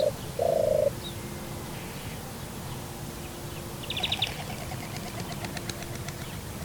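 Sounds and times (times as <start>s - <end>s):
European turtle dove calling: 0.0s - 1.2s, 3.8s - 6.5s.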